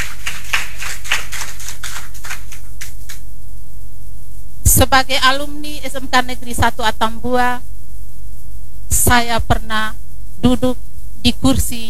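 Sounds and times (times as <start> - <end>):
audience applause: 0.0 - 3.2
speech: 4.8 - 7.7, 9.1 - 11.8.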